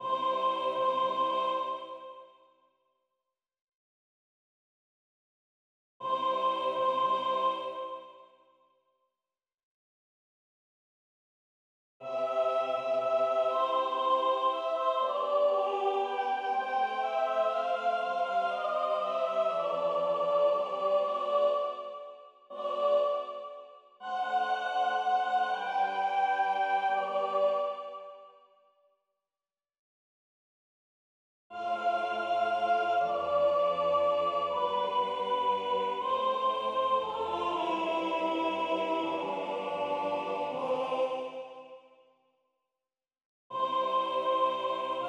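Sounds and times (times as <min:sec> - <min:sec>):
soprano soloists singing: 0:00.0 - 0:02.3, 0:06.0 - 0:08.2, 0:12.0 - 0:28.3, 0:31.5 - 0:41.8, 0:43.5 - 0:45.0.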